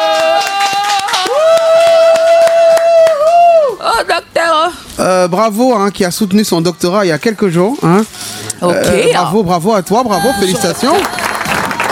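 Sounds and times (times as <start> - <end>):
audience applauding: 0.0 - 3.8, 10.2 - 11.9
speech: 5.0 - 11.2.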